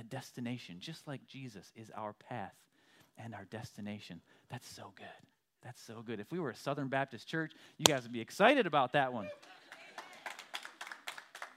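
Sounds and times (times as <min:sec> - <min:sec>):
speech: 0:00.1 - 0:09.6
audience clapping: 0:09.3 - 0:11.5.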